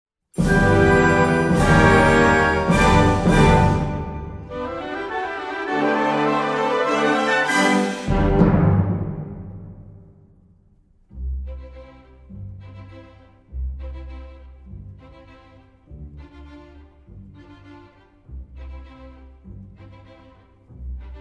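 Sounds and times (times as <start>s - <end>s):
piano: 0.4s - 10.0s.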